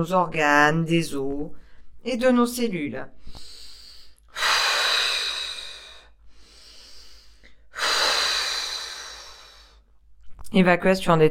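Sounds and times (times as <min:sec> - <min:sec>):
speech: 0:00.0 - 0:03.5, 0:10.6 - 0:11.2
deep slow breaths during a guided relaxation exercise: 0:03.2 - 0:10.0.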